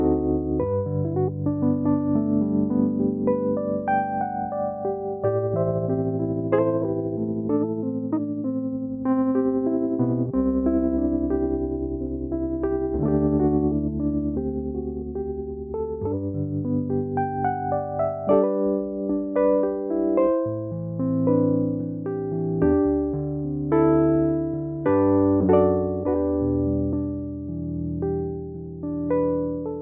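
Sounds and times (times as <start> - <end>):
electric piano with lush vibrato: 0.0 - 29.7.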